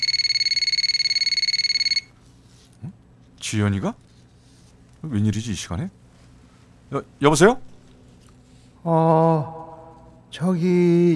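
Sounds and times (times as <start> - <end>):
telephone ringing: 0.0 - 2.2
speech: 2.8 - 4.1, 5.0 - 6.0, 6.9 - 7.7, 8.8 - 9.6, 10.3 - 11.1.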